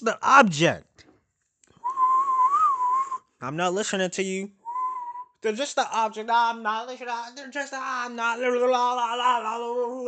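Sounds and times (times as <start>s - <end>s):
speech: 0.0s - 0.9s, 3.4s - 4.6s, 5.4s - 10.0s
person whistling: 1.8s - 3.3s, 4.6s - 5.4s.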